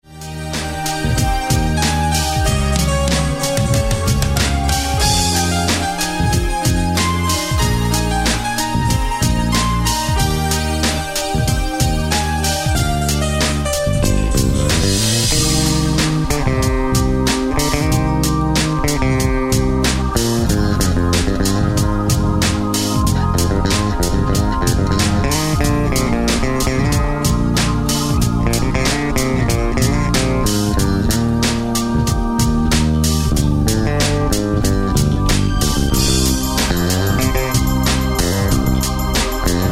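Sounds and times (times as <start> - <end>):
bass solo: 0.0 - 39.7.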